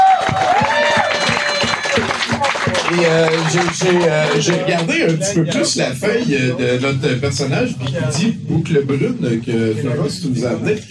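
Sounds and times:
applause: 0.0 - 5.3
speech: 2.9 - 10.8.

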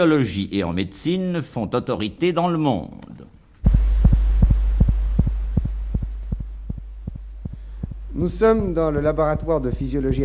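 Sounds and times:
speech: 0.0 - 3.1, 8.2 - 10.2
loud steady low hum: 3.6 - 10.2
heartbeat of a chicken embryo after freezing to -196 degrees: 3.7 - 10.2.

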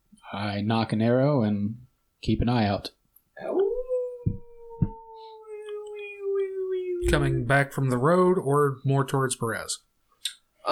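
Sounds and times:
speech: 0.3 - 3.5, 7.0 - 10.7
howling in a marshy bog: 3.4 - 8.0.

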